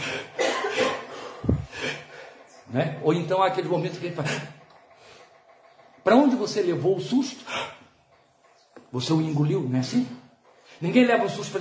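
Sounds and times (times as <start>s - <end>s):
person demonstrating sharp quick breaths: 0.0s - 2.6s, 4.3s - 5.5s, 7.4s - 7.9s
speech: 2.7s - 4.6s, 6.0s - 7.8s, 8.9s - 10.2s, 10.8s - 11.5s.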